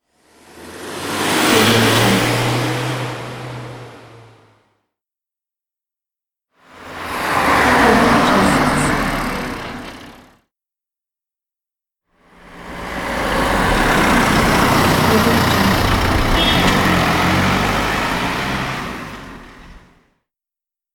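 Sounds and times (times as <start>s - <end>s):
car passing by: 0.2s - 4.6s, 6.6s - 10.4s, 12.2s - 20.0s.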